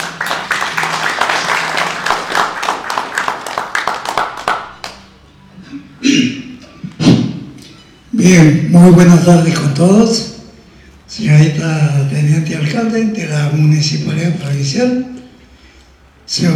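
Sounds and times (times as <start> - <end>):
crowd applause: 0.0 - 5.2
speech: 8.2 - 10.3, 11.1 - 15.2, 16.3 - 16.5.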